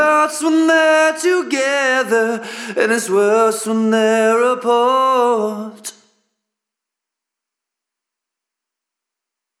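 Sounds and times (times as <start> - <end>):
lead vocal mix: 0.0 - 6.0.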